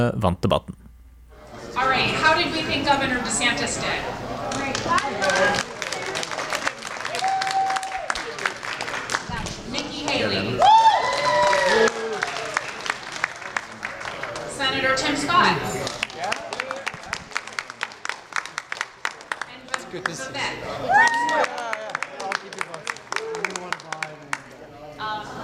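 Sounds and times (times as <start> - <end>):
speech: 0.0 - 0.8, 1.8 - 5.7, 14.7 - 16.0
debate audience applauding: 4.5 - 15.0, 15.8 - 20.2, 20.8 - 24.6
debate audience cheering and whooping: 7.0 - 8.2, 10.6 - 12.8, 20.8 - 22.0.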